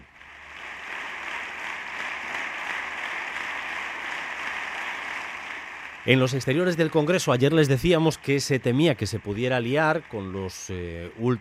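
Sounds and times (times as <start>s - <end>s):
applause in parliament: 0.0s - 11.4s
speech: 6.0s - 11.4s.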